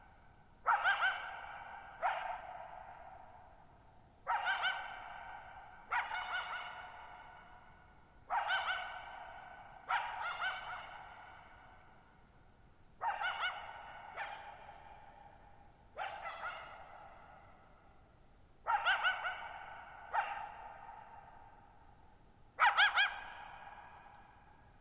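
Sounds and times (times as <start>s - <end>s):
coyote barking and yipping: 0.6s - 3.3s, 4.2s - 11.9s, 13.0s - 15.4s, 16.0s - 17.8s, 18.6s - 21.6s, 22.6s - 24.2s.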